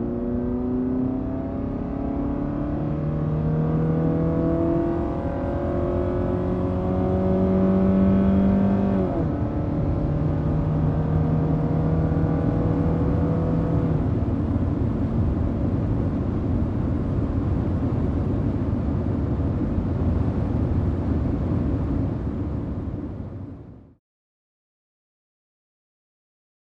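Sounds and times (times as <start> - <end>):
sports car driving: 0.0 - 23.6.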